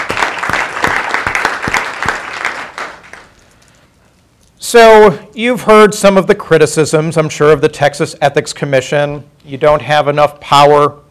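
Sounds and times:
audience applause: 0.0s - 3.3s
speech: 4.7s - 11.0s.

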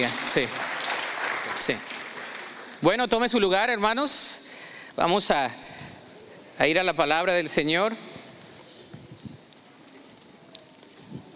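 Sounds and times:
speech: 0.0s - 0.6s, 1.6s - 2.0s, 2.8s - 4.4s, 5.0s - 5.7s, 6.6s - 8.1s
audience applause: 0.0s - 2.8s.

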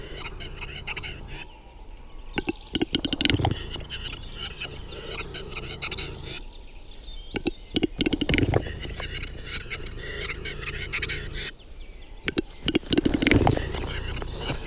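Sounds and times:
birdsong in a spring forest: 0.0s - 14.6s
rustling: 0.0s - 14.6s
displaying capercaillie cock calling in a spring forest: 2.4s - 5.7s, 7.4s - 11.3s, 12.2s - 14.6s.

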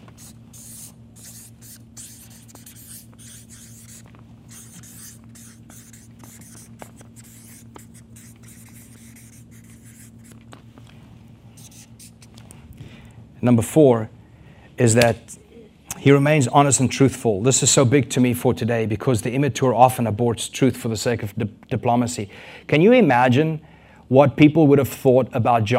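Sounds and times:
marker or chalk scratching across a board while writing a phrase: 0.0s - 10.4s, 11.6s - 12.4s
speech: 13.4s - 14.2s, 14.8s - 15.4s, 16.0s - 25.7s.

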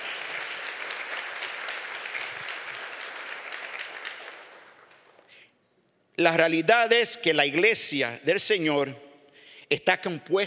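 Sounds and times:
audience applauding loudly: 0.0s - 5.4s
speech: 6.2s - 9.0s, 9.7s - 10.4s.

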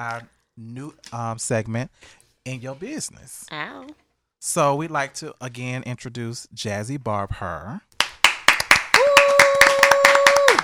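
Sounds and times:
speech: 0.0s - 7.9s
people clapping: 8.0s - 10.6s.

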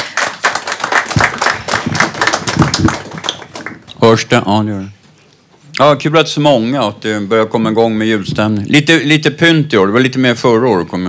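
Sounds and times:
audience applause: 0.0s - 4.0s
speech: 4.0s - 5.0s, 5.8s - 11.0s.

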